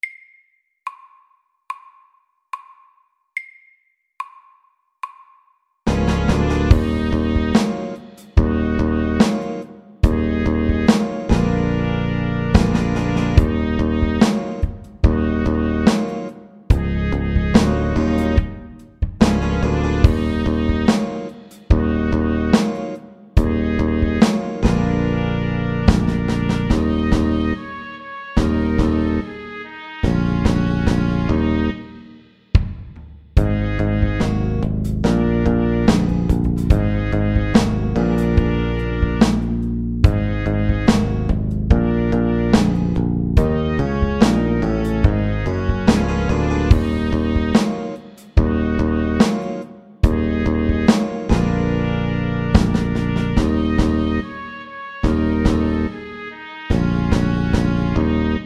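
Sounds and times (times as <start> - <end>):
slow funk music: 5.9 - 56.1, 56.7 - 58.4.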